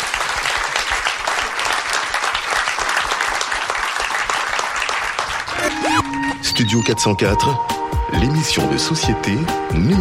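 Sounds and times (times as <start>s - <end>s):
audience applause: 0.0s - 6.2s
speech: 6.6s - 9.9s.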